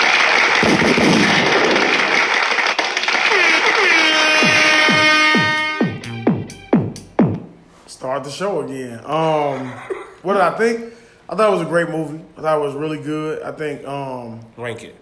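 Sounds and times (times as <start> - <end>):
round of applause: 0.0 - 5.8
speech: 8.3 - 15.0.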